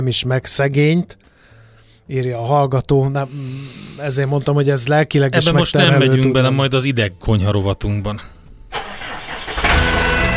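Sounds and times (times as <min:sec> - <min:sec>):
speech: 0:00.0 - 0:01.3, 0:02.1 - 0:08.4
cultivator engine starting and idling: 0:08.7 - 0:10.2.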